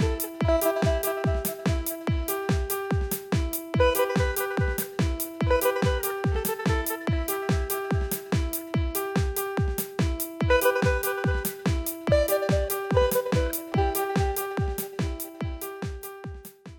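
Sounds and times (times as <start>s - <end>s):
arpeggio: 0.0s - 3.0s, 3.7s - 9.7s, 10.4s - 15.8s.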